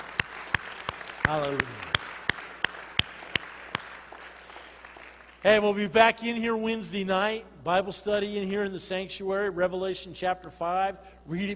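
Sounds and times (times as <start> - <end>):
audience clapping in a steady unison beat: 0.0 - 5.8
speech: 1.3 - 1.9, 5.4 - 11.5.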